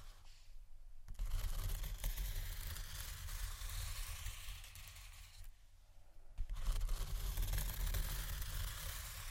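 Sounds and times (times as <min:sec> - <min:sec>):
slow deep soft scratching: 0:01.1 - 0:05.4, 0:06.4 - 0:09.3.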